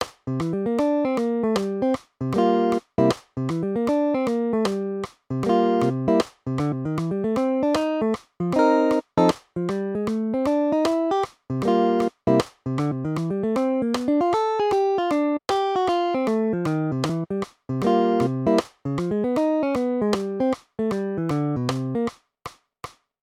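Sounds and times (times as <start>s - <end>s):
blues music: 0.0s - 22.1s.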